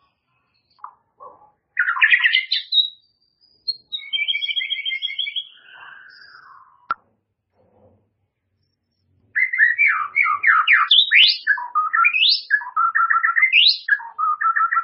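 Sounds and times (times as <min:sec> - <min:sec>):
White-rumped shama song with whistles: 0:01.8 - 0:06.9, 0:09.4 - 0:14.8.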